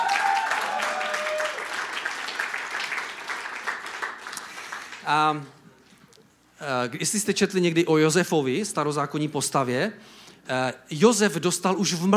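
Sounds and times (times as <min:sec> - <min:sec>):
audience applause: 0:00.0 - 0:05.2
speech: 0:05.1 - 0:05.6, 0:06.6 - 0:12.1.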